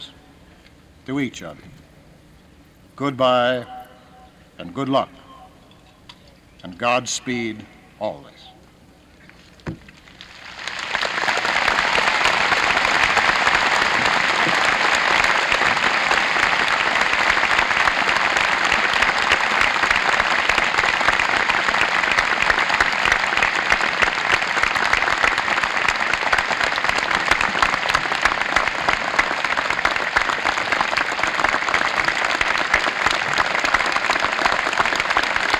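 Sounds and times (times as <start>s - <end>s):
speech: 1.0s - 1.8s, 3.0s - 3.8s, 4.6s - 5.2s, 6.6s - 8.5s
graduation audience applause: 10.1s - 35.5s.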